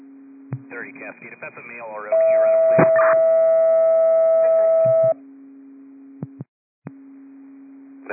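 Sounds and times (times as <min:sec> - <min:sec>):
fire dispatch alert tones: 0:00.6 - 0:05.2
speech: 0:00.8 - 0:03.6.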